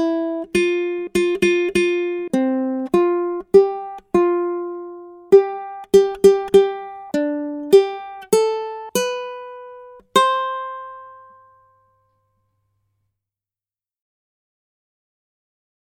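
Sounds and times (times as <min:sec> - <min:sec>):
ukulele accompaniment: 0:00.0 - 0:12.0.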